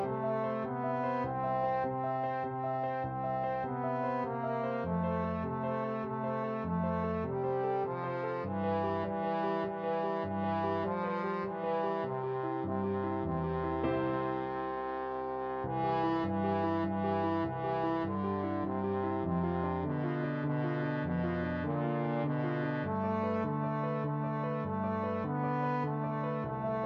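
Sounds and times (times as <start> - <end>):
trombone playing a Spanish romance: 0.0 - 26.8.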